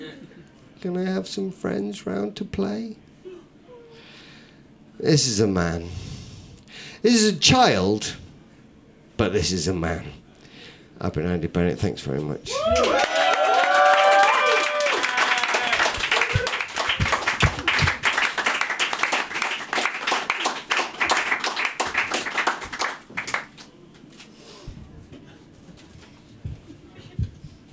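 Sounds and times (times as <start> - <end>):
speech: 0.2 - 3.0, 5.0 - 6.1, 7.0 - 8.2, 9.2 - 10.2, 11.0 - 13.2
audience applause: 12.6 - 23.6.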